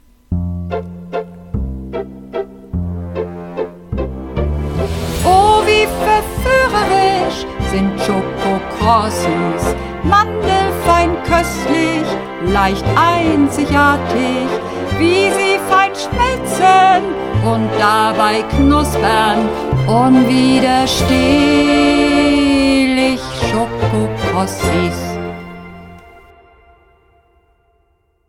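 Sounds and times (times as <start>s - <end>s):
advertising music: 0.3s - 27.6s.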